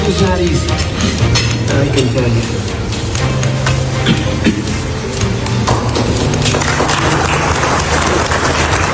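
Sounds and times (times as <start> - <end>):
speech: 0.1 - 4.7
audience applause: 5.7 - 8.9.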